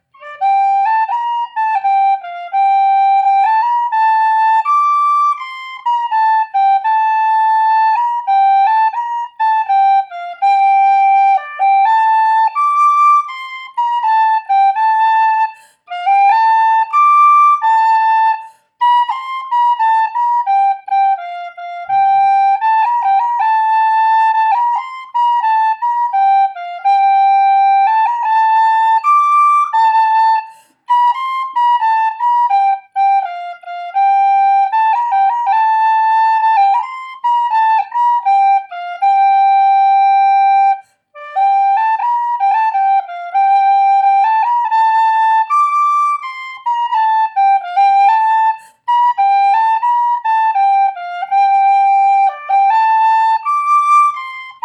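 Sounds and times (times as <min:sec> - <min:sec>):
C whistle: 0:00.0 - 0:54.6.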